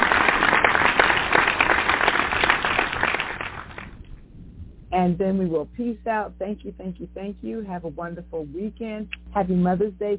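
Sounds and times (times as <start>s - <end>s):
audience clapping: 0.0s - 4.0s
speech: 5.0s - 10.1s.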